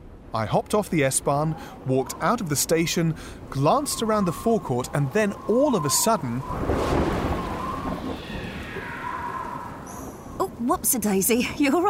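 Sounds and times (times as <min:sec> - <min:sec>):
speech: 0:00.3 - 0:07.3, 0:10.6 - 0:11.8
sudden gust of wind: 0:01.4 - 0:10.7.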